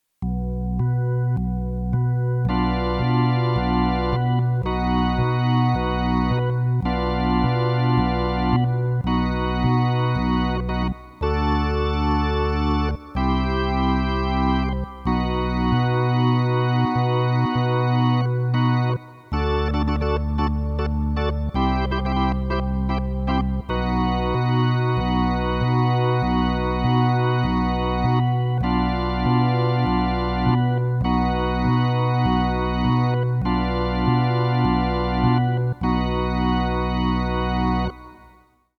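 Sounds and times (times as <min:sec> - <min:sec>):
organ: 0:00.0 - 0:38.7.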